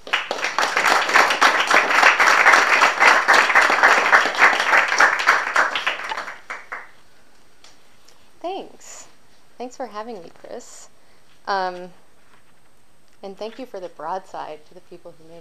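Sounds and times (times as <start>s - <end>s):
audience applause: 0.0s - 6.9s
speech: 9.7s - 12.0s, 13.2s - 15.4s.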